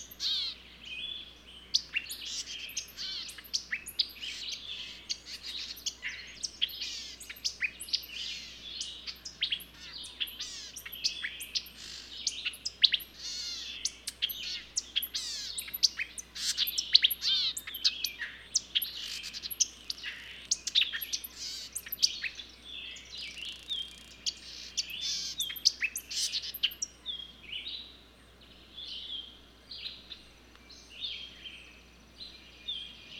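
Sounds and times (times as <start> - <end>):
birds chirping and twittering: 0.0 - 33.1.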